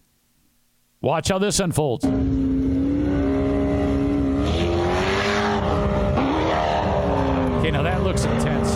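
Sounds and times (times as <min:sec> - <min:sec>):
speech: 0:01.0 - 0:02.4, 0:07.7 - 0:08.7
dune buggy and SUV engines revving on Dubai sand dunes: 0:02.1 - 0:08.7.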